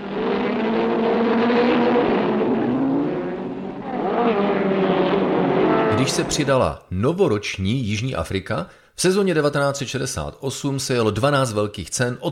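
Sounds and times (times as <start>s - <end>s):
racing car engines revving at race start: 0.0s - 6.6s
speech: 6.0s - 12.3s.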